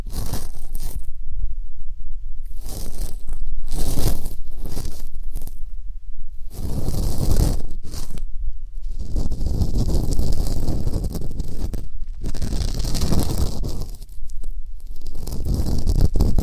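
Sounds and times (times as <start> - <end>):
ear canal cleaning scratchy rustling: 0.0 - 1.2, 2.4 - 5.8, 6.4 - 16.4.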